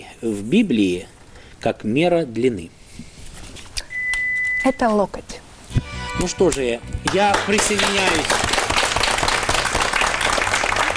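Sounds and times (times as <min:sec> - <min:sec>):
speech: 0:00.2 - 0:02.8, 0:04.6 - 0:08.5
studio audience applause on a television quiz show: 0:07.1 - 0:10.9.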